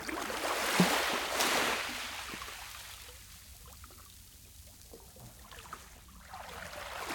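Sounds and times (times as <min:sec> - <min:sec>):
gentle waves on a small beach with echo: 0:00.2 - 0:03.2, 0:05.7 - 0:07.1.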